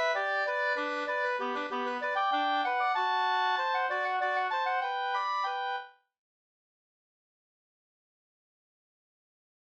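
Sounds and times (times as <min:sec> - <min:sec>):
polka music: 0:00.0 - 0:05.9.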